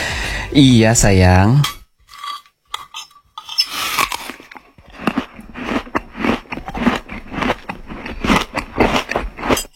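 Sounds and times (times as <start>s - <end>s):
speech: 0.5s - 1.8s
chewing and crunching food while eating: 3.7s - 9.7s.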